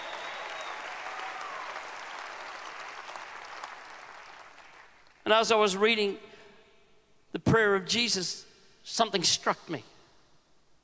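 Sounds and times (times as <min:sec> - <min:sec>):
whistle: 0:00.0 - 0:00.9
scattered cheers: 0:00.0 - 0:03.7
crowd applause: 0:00.0 - 0:05.2
speech: 0:05.3 - 0:06.3, 0:07.4 - 0:09.9.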